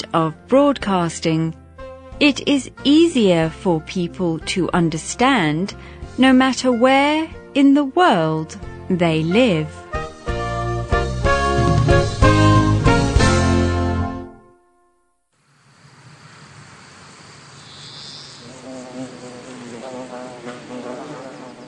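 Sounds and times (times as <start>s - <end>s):
music: 0.0s - 15.2s
speech: 0.1s - 1.6s, 2.2s - 9.8s
small black and yellow honeybees buzzing among flowers on a warm sunny day: 15.6s - 21.6s.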